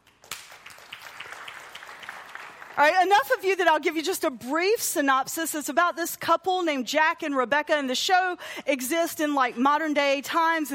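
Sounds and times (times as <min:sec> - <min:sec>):
audience clapping: 0:00.0 - 0:03.4
speech: 0:02.8 - 0:10.7.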